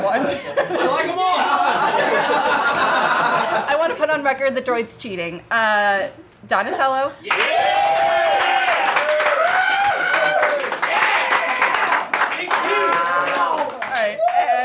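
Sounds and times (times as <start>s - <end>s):
laughter: 0.0s - 3.8s
speech: 0.2s - 8.3s
audience clapping: 7.2s - 14.6s
many voices cheering and calling out: 7.3s - 14.6s.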